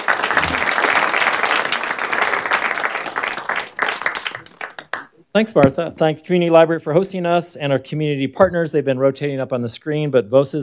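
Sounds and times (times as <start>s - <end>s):
audience clapping at a community library event: 0.0s - 5.7s
speech: 5.3s - 10.6s.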